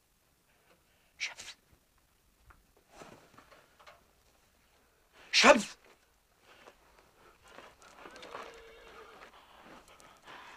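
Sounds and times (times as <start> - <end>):
soft rustling and shuffling: 0.4 - 10.5
speech: 5.4 - 5.7
horse neighing: 8.0 - 9.3.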